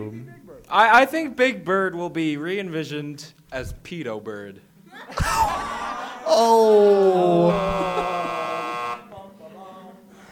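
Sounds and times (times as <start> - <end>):
speech: 0.0 - 8.3
laughter: 4.9 - 8.8
fail horn sound effect: 7.4 - 9.0.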